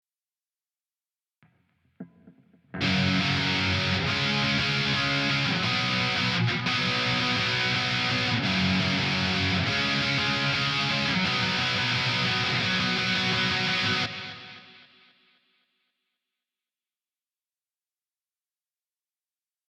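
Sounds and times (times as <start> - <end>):
guitar: 2.0 - 15.5.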